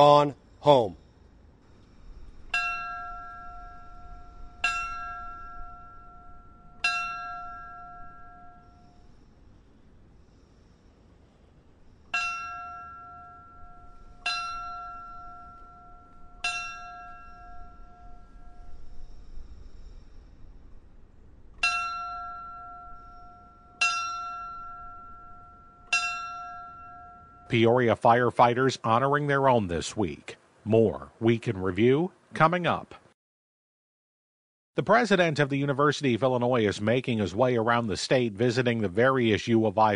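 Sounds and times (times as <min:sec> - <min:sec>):
speech: 0:00.0 - 0:01.0, 0:27.6 - 0:33.0, 0:34.8 - 0:39.9
memorial bell rung for fallen firefighters: 0:02.5 - 0:09.2, 0:12.1 - 0:18.9, 0:21.6 - 0:27.9.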